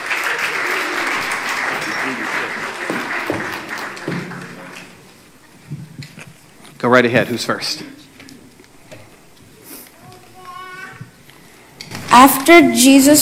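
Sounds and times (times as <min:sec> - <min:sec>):
audience applause: 0:00.0 - 0:05.1
speech: 0:06.8 - 0:08.0, 0:12.2 - 0:13.2.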